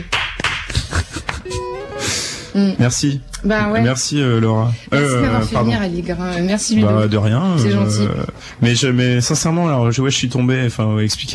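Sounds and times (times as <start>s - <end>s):
applause: 0.0s - 1.4s
speech: 2.6s - 11.3s.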